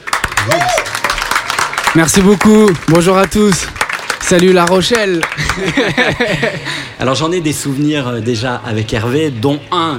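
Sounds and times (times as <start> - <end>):
audience applause: 0.0 - 6.5
speech: 2.0 - 3.7, 4.3 - 9.9
laughter: 5.2 - 7.0.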